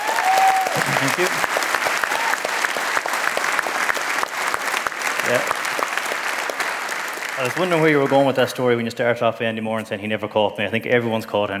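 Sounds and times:
audience round of applause: 0:00.0 - 0:08.6
speech: 0:00.8 - 0:01.6, 0:05.3 - 0:05.6, 0:07.4 - 0:11.5.

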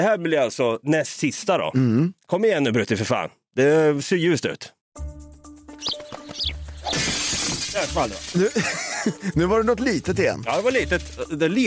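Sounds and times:
speech: 0:00.0 - 0:05.1, 0:07.8 - 0:11.6
window glass shattering: 0:06.8 - 0:09.1, 0:10.5 - 0:11.3
falling glass shards tinkling: 0:06.9 - 0:09.0
laughter: 0:08.3 - 0:09.5.

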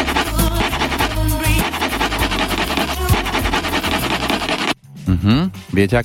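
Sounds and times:
scratching a Tipos lottery scratch card: 0:00.0 - 0:04.8.

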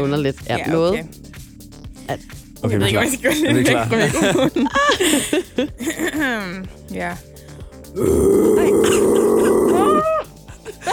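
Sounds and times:
speech: 0:00.0 - 0:01.3, 0:02.1 - 0:07.3, 0:07.9 - 0:09.3
laughter: 0:03.2 - 0:06.3, 0:08.9 - 0:10.9
voice imitating a bear growl: 0:08.0 - 0:10.3.

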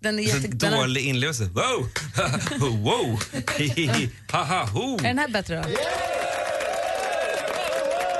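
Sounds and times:
speech: 0:00.0 - 0:06.1
laughter: 0:02.0 - 0:04.6
recorded applause sound effect: 0:02.0 - 0:08.1.

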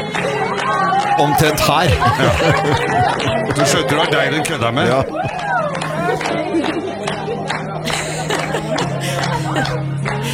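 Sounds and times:
busy murmur of crowd chatter: 0:00.0 - 0:10.3
laughter: 0:00.0 - 0:10.3
scattered hand claps from restaurant guests: 0:00.0 - 0:10.3
speech: 0:01.2 - 0:06.8, 0:09.6 - 0:09.9.

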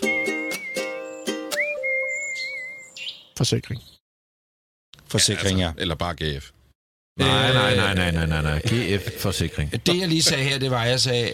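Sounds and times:
steady musical backing with rhythmic accents: 0:00.0 - 0:02.3
whistled imitation birdsong in a jingle: 0:00.0 - 0:04.0
speech: 0:03.4 - 0:03.9, 0:05.1 - 0:06.6, 0:07.2 - 0:11.3.

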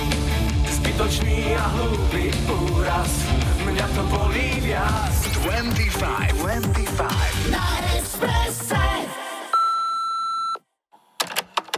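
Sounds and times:
music: 0:00.0 - 0:09.5
speech: 0:01.0 - 0:08.9
answering machine beep: 0:09.6 - 0:10.6.

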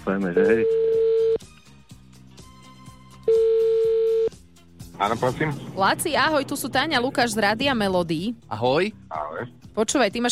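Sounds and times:
quiet music: 0:00.0 - 0:10.3
speech: 0:00.1 - 0:00.9, 0:05.0 - 0:10.3
outgoing phone call ringing tone: 0:00.5 - 0:01.4, 0:03.3 - 0:04.3.

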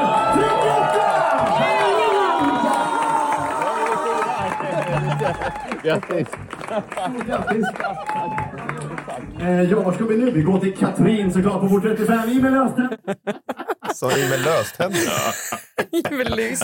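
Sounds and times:
audience cheering: 0:00.0 - 0:09.2
laughter: 0:04.1 - 0:08.4, 0:12.2 - 0:16.6
speech: 0:05.3 - 0:08.6, 0:09.2 - 0:13.4, 0:14.0 - 0:16.6.

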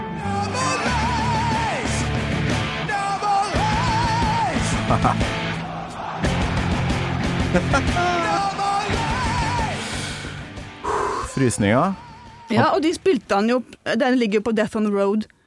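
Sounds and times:
concert crowd singing along: 0:00.2 - 0:10.1
laughter: 0:04.5 - 0:09.6
speech: 0:04.9 - 0:05.4, 0:07.6 - 0:08.2, 0:11.4 - 0:15.4.

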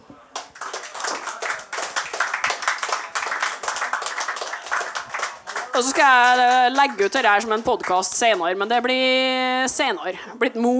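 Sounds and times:
audience applause: 0:00.3 - 0:08.5
speech: 0:05.8 - 0:10.7.

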